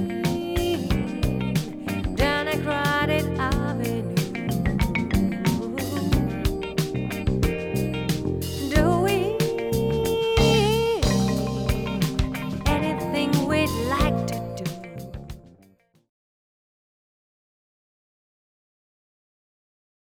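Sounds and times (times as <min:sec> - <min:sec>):
groove music: 0:00.0 - 0:15.6.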